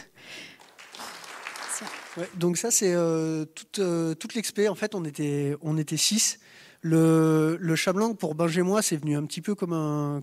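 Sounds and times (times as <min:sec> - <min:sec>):
audience applause: 0:00.5 - 0:02.6
speech: 0:01.8 - 0:10.2.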